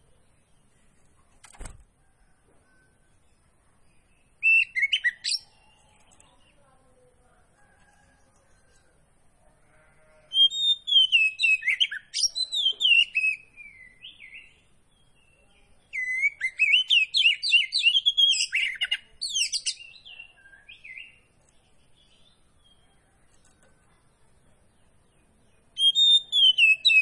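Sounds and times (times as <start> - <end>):
Oriental magpie-robin singing: 4.0 - 6.6, 10.3 - 23.0, 24.5 - 27.0.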